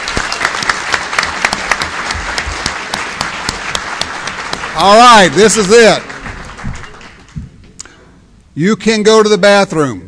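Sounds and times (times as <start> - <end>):
audience applause: 0.0 - 7.4
speech: 4.8 - 6.1, 8.6 - 10.0.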